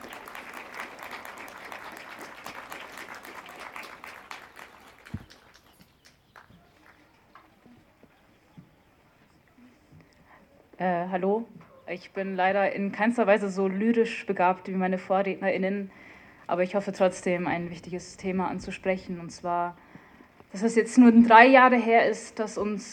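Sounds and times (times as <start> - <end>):
audience applause: 0.0 - 8.0
speech: 10.8 - 19.8, 20.5 - 22.9.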